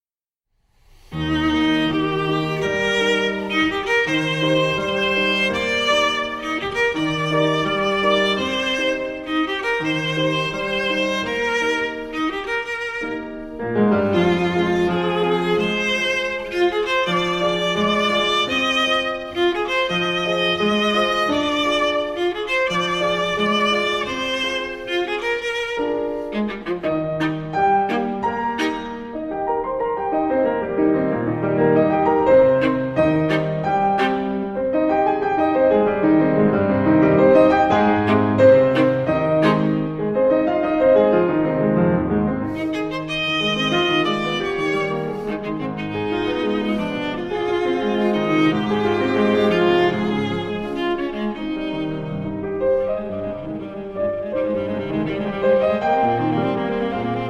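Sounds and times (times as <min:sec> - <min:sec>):
viola sonata: 0:00.9 - 0:57.2.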